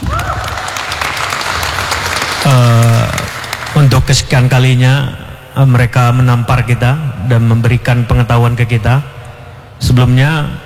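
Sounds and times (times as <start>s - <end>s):
audience applause for a group: 0.0s - 3.9s
speech: 2.5s - 2.9s, 3.9s - 9.2s, 9.8s - 10.6s.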